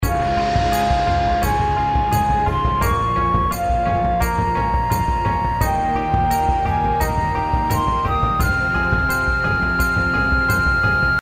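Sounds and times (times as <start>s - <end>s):
outro background music: 0.0s - 11.2s.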